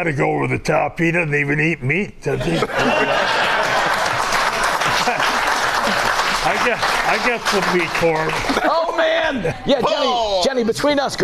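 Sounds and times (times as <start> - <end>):
speech: 0.0 - 3.5, 5.9 - 11.2
laughter: 2.4 - 10.1
crowd clapping: 2.7 - 8.7.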